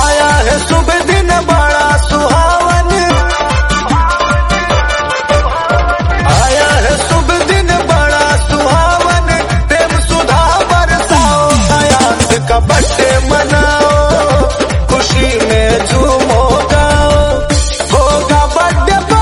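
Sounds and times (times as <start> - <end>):
Bhojpuri song: 0.0 - 19.2.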